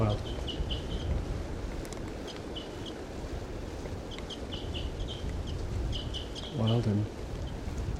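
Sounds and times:
wild female bird chirping calls: 0:00.0 - 0:01.2, 0:02.1 - 0:03.2, 0:04.0 - 0:07.7
wind-like rumble: 0:00.0 - 0:07.9
speech: 0:06.6 - 0:07.2.

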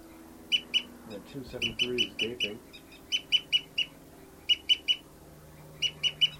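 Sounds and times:
faint low hum: 0:00.0 - 0:06.3
bird souping call: 0:00.5 - 0:00.9, 0:01.6 - 0:05.0, 0:05.6 - 0:06.3
speech: 0:01.1 - 0:02.8.

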